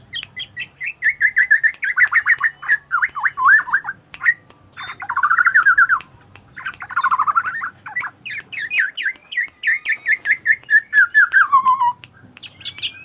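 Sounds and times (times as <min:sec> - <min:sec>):
bird chirping calls: 0:00.0 - 0:13.0.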